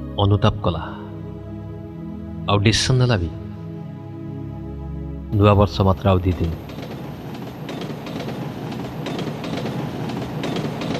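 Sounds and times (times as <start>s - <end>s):
speech: 0.2s - 1.0s, 2.5s - 3.4s, 5.3s - 6.8s
train travelling toward Berhampur: 5.8s - 10.9s
train wheels clattering: 6.3s - 10.9s.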